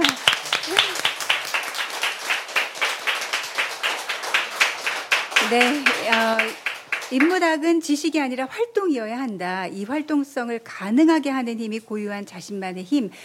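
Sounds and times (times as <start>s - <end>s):
crowd applause: 0.0s - 7.5s
speech: 5.5s - 6.5s, 7.1s - 13.2s.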